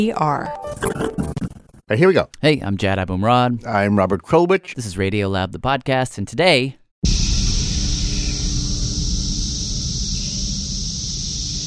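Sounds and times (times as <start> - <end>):
speech: 0.0 - 7.3
cicadas buzzing: 7.1 - 11.6.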